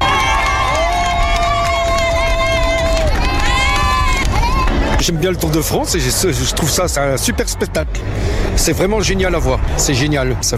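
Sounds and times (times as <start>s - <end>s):
roadside crowd cheering Tour de France riders at Sallanches: 0.0s - 7.9s
speech: 5.0s - 10.5s.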